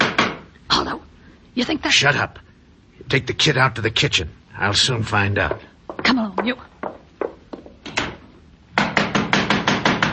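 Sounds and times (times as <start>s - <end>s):
loud knocking on a door: 0.0s - 0.4s, 5.4s - 8.2s, 8.8s - 10.1s
speech: 1.6s - 2.4s, 3.1s - 6.7s.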